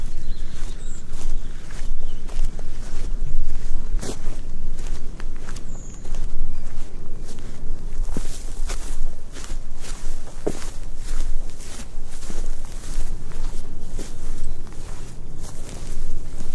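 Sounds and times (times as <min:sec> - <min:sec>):
footsteps crunching through a Viking village in Iceland: 0:00.0 - 0:16.5.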